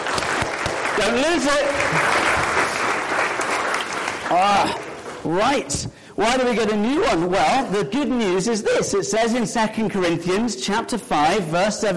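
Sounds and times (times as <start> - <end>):
audience round of applause: 0.0 - 5.3
speech: 1.0 - 2.3, 4.3 - 11.9.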